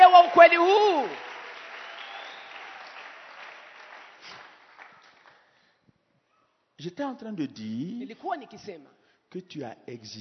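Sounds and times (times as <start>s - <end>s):
audience applause and cheering: 0.0s - 4.3s
speech: 0.4s - 1.3s, 6.8s - 10.1s.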